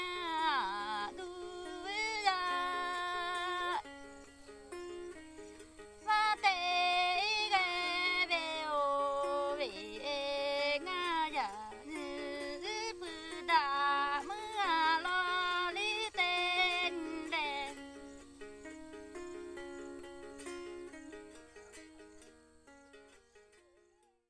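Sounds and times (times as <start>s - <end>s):
Red Lahu woman singing a song: 0.0s - 18.4s
lute accompaniment: 0.0s - 24.2s.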